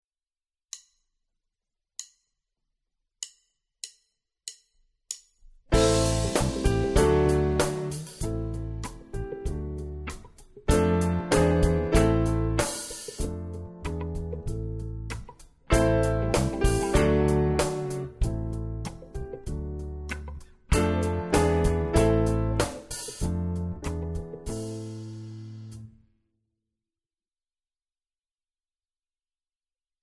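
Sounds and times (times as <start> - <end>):
piano play-along: 5.7 - 25.9.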